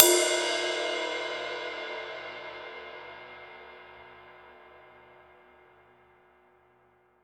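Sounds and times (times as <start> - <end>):
dry ride cymbal: 0.0 - 4.3.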